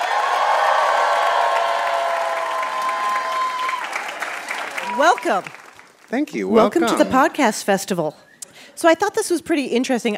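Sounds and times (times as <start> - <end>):
podcast festival audience shouting whoops and cheers: 0.0 - 5.7
festival audience clapping to welcome a guest on stage: 0.0 - 6.9
speech: 5.0 - 10.1.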